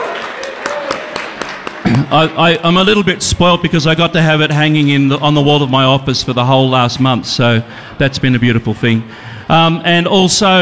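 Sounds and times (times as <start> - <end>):
audience applause for an artist at a sponsor thank-you: 0.0 - 2.8
speech: 1.9 - 10.5.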